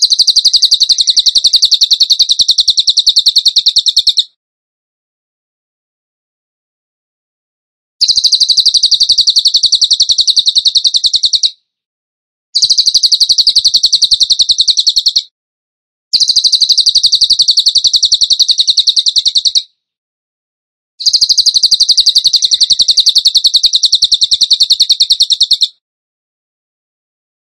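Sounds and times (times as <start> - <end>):
bird song: 0.0 - 4.4, 8.0 - 11.7, 12.6 - 15.4, 16.1 - 19.8, 21.0 - 25.8.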